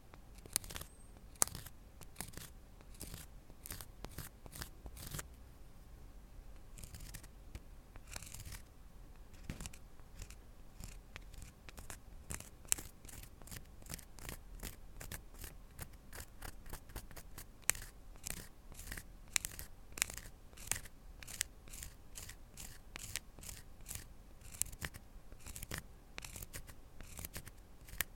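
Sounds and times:
crackly ear cleaning in the left ear, ASMR: 0.1 - 5.3, 6.6 - 28.1.

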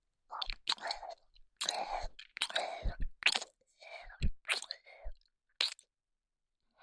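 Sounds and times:
nipple licking: 0.4 - 3.5, 5.6 - 5.8.

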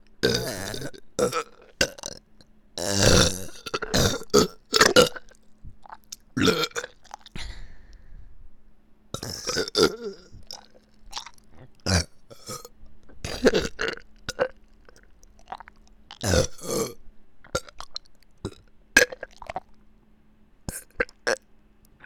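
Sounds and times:
burping in both ears: 0.2 - 2.2, 2.8 - 7.5, 9.2 - 14.6, 15.4 - 19.7.

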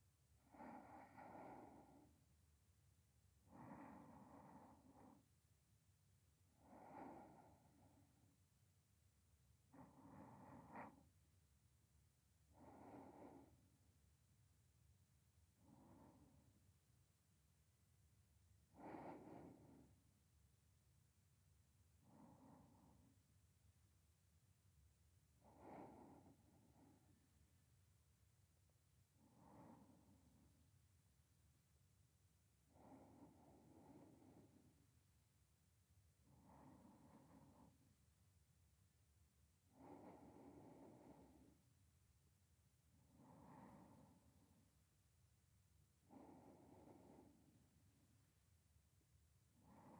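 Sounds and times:
sleeping breath voice beside the listener: 0.4 - 2.2, 3.5 - 5.3, 6.5 - 8.3, 9.7 - 11.0, 12.5 - 13.6, 15.6 - 16.6, 18.7 - 20.0, 22.0 - 23.2, 25.4 - 27.2, 29.2 - 30.6, 32.7 - 34.9, 36.2 - 37.9, 39.7 - 41.7, 43.0 - 44.7, 46.0 - 47.8, 49.6 - 49.9.

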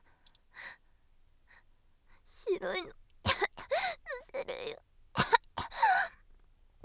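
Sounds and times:
oral sex sounds: 2.4 - 6.0.

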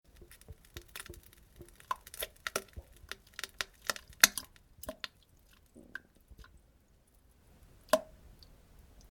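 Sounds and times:
feces plopping into toilet water: 0.1 - 6.6.

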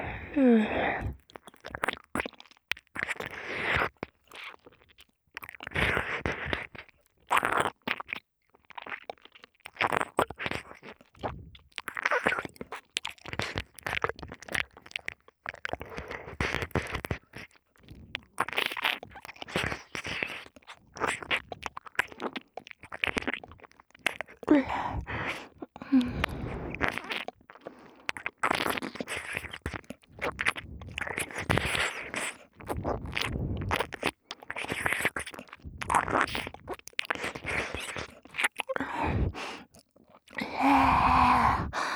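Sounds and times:
ear licking ASMR loop: 0.0 - 41.9.

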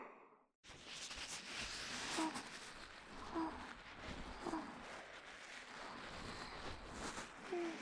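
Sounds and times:
massage sounds in both ears: 0.7 - 7.8
person whispering: 2.1 - 4.9, 7.3 - 7.8.

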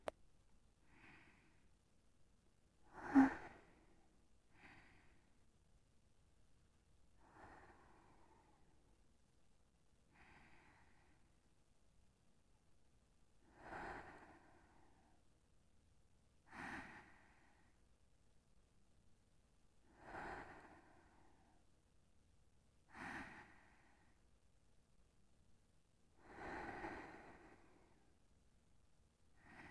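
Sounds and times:
person breathing in sleep: 0.9 - 1.7, 2.9 - 5.4, 7.2 - 8.7, 10.2 - 11.3, 13.4 - 15.2, 16.5 - 17.8, 19.8 - 21.6, 22.9 - 24.2, 26.2 - 28.1, 29.4 - 29.6
person sleep talking: 2.9 - 3.6.

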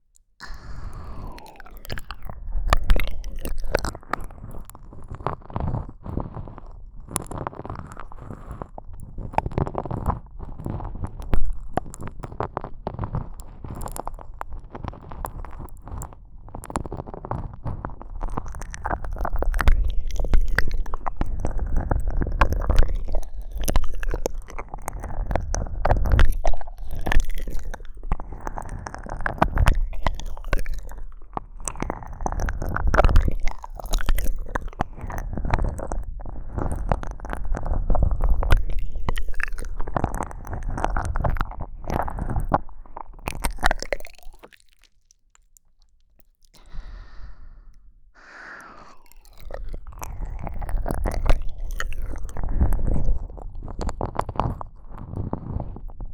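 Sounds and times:
slow deep ear licking sounds: 0.4 - 56.1.

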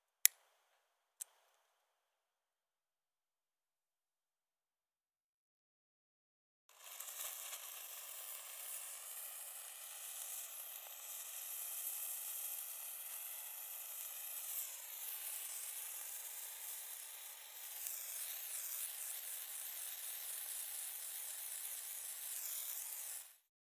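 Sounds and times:
handheld firework sparkling until the flame goes out: 6.7 - 23.4.

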